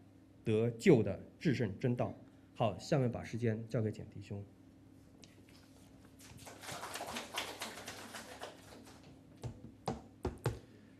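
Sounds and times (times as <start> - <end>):
speech: 0.5 - 4.6
audience applause: 6.5 - 9.1.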